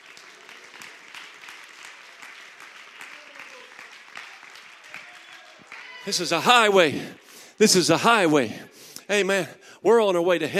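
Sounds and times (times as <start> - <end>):
crowd clapping hands: 0.0 - 7.4
speech: 6.0 - 10.5.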